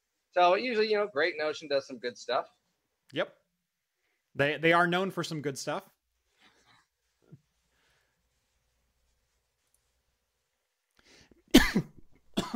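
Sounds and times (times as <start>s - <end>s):
speech: 0.4s - 3.4s, 4.4s - 5.9s
person coughing after choking on own spit: 11.5s - 12.5s.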